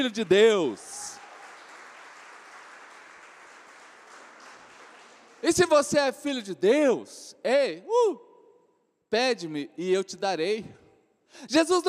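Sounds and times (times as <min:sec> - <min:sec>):
speech: 0:00.0 - 0:00.9, 0:05.4 - 0:08.3, 0:09.1 - 0:11.8
audience applause: 0:00.0 - 0:05.5.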